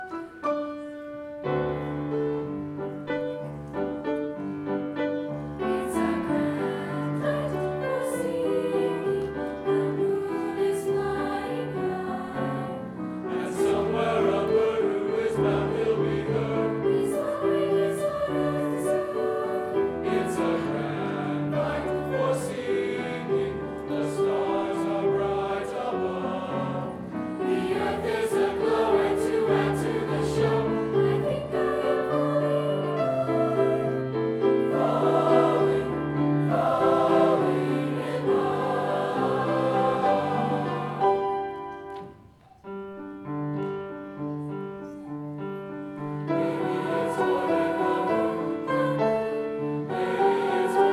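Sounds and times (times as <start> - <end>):
concert choir singing: 0.0 - 42.2, 44.4 - 50.9.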